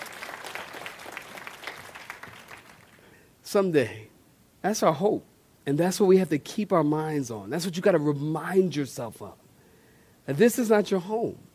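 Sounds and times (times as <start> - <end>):
audience clapping hands: 0.0 - 3.1
speech: 3.5 - 9.4, 10.3 - 11.5.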